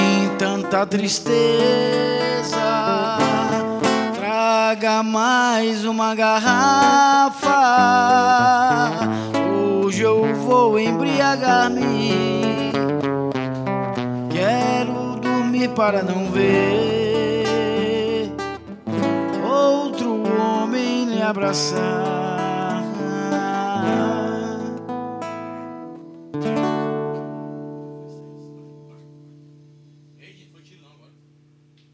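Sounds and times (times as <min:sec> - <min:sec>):
person singing: 0:00.0 - 0:25.1
viola caipira acoustic guitar: 0:00.0 - 0:31.9.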